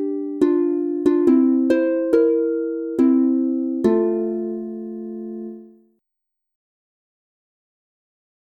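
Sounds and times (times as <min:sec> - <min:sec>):
instrumental Bavarian folk song on harp in F major: 0:00.0 - 0:05.8.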